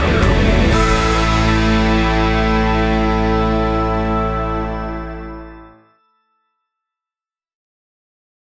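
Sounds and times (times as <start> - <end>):
rock music: 0.0 - 5.8.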